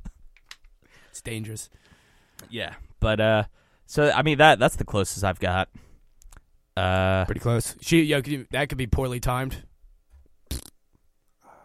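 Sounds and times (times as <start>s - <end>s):
speech: 1.2s - 5.9s, 6.8s - 9.7s
fart on the hand: 10.5s - 10.8s.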